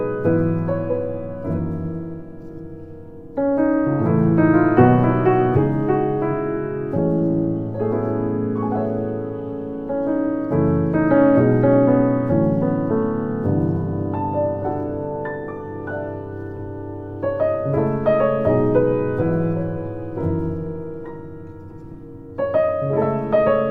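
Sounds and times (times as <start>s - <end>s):
Yamaha G3 piano: 0.0s - 23.6s.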